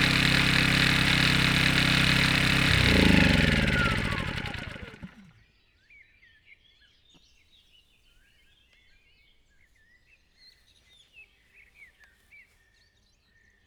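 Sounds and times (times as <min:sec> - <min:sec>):
petrol generator at a waterworks: 0:00.0 - 0:05.3.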